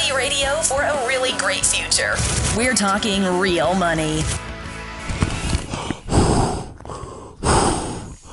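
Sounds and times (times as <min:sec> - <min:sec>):
speech: 0:00.1 - 0:04.4
heavy breathing into a bag: 0:05.0 - 0:08.2.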